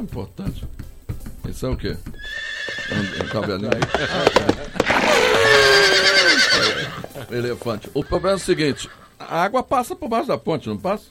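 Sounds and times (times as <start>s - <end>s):
speech: 0.0s - 0.7s, 1.5s - 2.3s, 2.9s - 11.0s
horse neighing sound effect: 2.2s - 9.4s.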